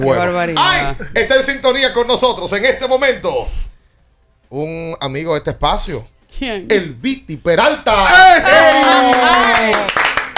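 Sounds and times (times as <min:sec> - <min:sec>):
speech: 0:00.0 - 0:03.6, 0:04.5 - 0:10.0
person shouting or cheering: 0:08.0 - 0:09.9
hand claps: 0:08.5 - 0:10.3.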